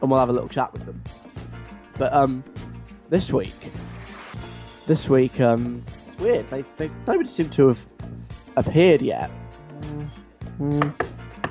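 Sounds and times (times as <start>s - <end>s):
speech: 0.0s - 1.2s, 2.0s - 3.9s, 4.9s - 11.2s
knocking on wooden door: 10.8s - 11.4s.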